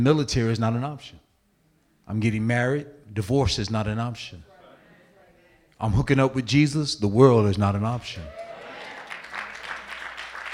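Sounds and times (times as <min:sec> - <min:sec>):
speech: 0:00.0 - 0:01.2, 0:02.1 - 0:04.5, 0:05.8 - 0:08.5
audience clapping: 0:08.3 - 0:10.5.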